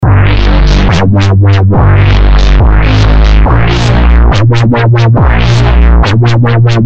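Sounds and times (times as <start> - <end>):
bass: 0.0 - 6.8.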